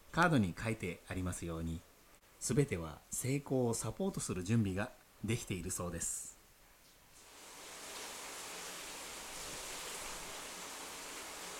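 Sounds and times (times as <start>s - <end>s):
speech: 0.2s - 6.3s
heavy rain falling: 7.3s - 11.5s.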